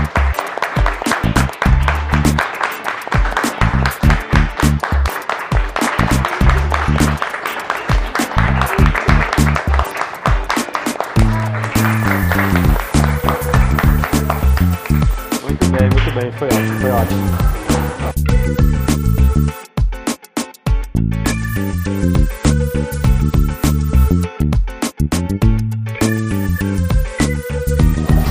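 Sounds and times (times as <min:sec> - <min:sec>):
audience applause: 0:00.0 - 0:15.4
loud music with stepping bass line and drum hits: 0:01.2 - 0:02.4, 0:03.6 - 0:05.1, 0:06.0 - 0:07.2, 0:08.4 - 0:09.8, 0:11.2 - 0:28.2.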